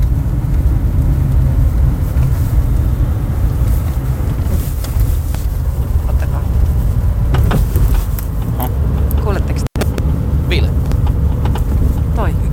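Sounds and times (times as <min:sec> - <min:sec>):
car driving rumble: 0:00.0 - 0:12.5
knocking clunks from car rear axle: 0:04.3 - 0:12.5.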